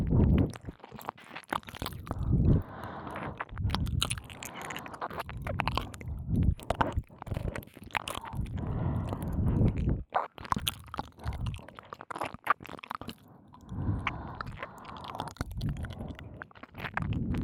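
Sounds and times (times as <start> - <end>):
licking both ears: 0.0 - 17.4
breathing into both ears: 2.1 - 3.5, 5.8 - 10.0, 13.2 - 16.4.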